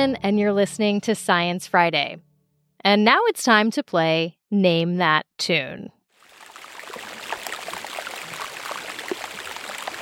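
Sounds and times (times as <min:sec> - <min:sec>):
speech: 0:00.0 - 0:06.0
air bubbles popping from melting glacier ice: 0:06.2 - 0:10.0.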